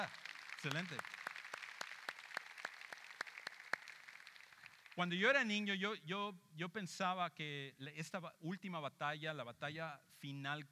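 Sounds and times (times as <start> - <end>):
speech: 0.0 - 1.2, 5.0 - 10.7
audience applause: 0.0 - 5.0
sharp claps in a steady, even rhythm: 0.0 - 5.4.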